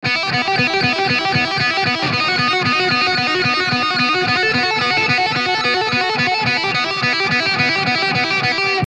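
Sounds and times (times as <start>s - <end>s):
lead melody: 0.0s - 8.8s.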